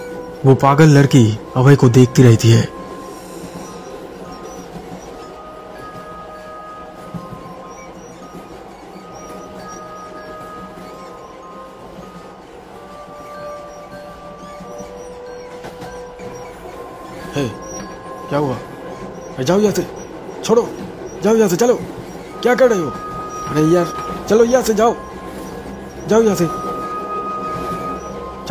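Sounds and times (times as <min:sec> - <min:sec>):
train rolling along the track: 0:00.0 - 0:28.5
train wheel squeals: 0:00.0 - 0:28.5
speech: 0:00.4 - 0:02.8, 0:19.5 - 0:25.1, 0:26.1 - 0:26.6.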